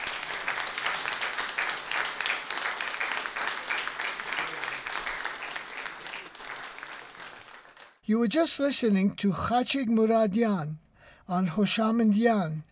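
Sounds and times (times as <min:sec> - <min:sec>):
audience applause: 0:00.0 - 0:08.0
speech: 0:08.1 - 0:12.7.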